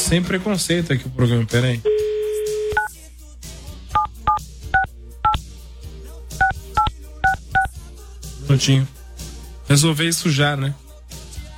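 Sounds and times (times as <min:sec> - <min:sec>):
speech: 0:00.1 - 0:02.0, 0:08.5 - 0:09.0, 0:09.7 - 0:10.8
steady telephone tone: 0:01.9 - 0:02.9
telephone keypad dialing beeps: 0:01.9 - 0:02.9, 0:06.4 - 0:07.7.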